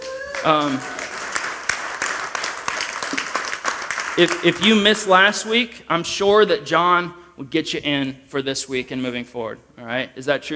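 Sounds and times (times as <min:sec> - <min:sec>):
person cheering: 0:00.0 - 0:01.2
room of people applauding: 0:00.0 - 0:04.8
speech: 0:00.4 - 0:01.0, 0:04.2 - 0:10.5.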